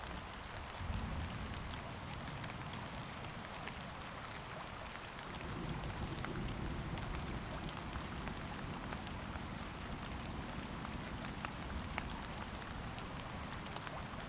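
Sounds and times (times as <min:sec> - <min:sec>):
thunderstorm: 0:00.2 - 0:14.2.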